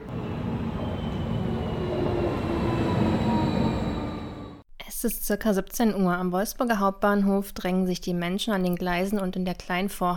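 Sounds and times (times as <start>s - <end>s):
regional train arriving at station: 0.0s - 4.6s
speech: 5.0s - 10.1s.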